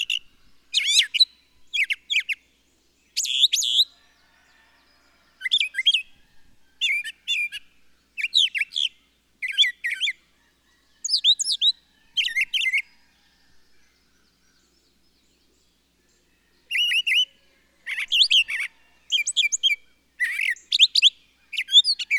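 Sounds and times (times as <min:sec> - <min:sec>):
bird chirping and trilling: 0:00.0 - 0:02.5, 0:03.1 - 0:04.0, 0:06.8 - 0:10.2, 0:11.0 - 0:12.9, 0:16.7 - 0:17.3, 0:17.9 - 0:22.1.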